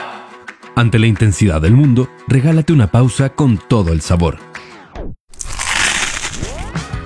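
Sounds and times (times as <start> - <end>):
speech: 0.8 - 4.5
crunchy bite into food: 5.3 - 6.8.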